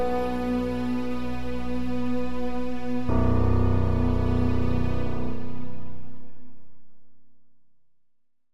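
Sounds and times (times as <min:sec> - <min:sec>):
synthesizer strings: 0:00.0 - 0:06.7
piano on a synthesizer workstation: 0:00.0 - 0:07.6.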